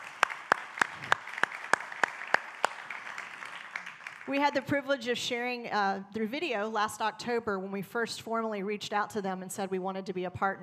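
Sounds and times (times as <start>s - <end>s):
church audience clapping to welcome guests: 0.0s - 4.7s
speech: 4.3s - 10.6s.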